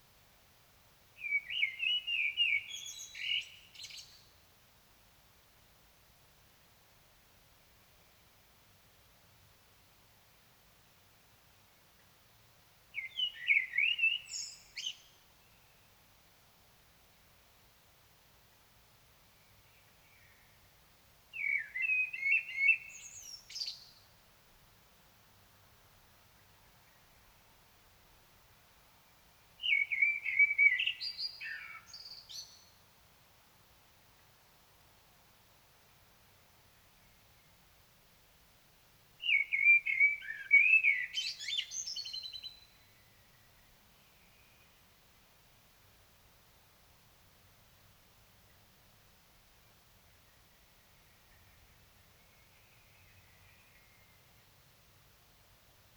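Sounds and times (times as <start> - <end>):
Common blackbird song: 1.2 - 4.4, 12.9 - 16.0, 19.3 - 24.2, 29.6 - 32.9, 39.2 - 45.0, 50.1 - 54.6.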